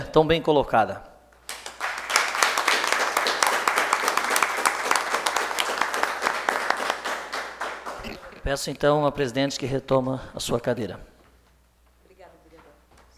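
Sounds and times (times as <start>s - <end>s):
speech: 0.1s - 1.1s, 8.5s - 11.1s
standing ovation applause in council chamber: 1.4s - 8.6s.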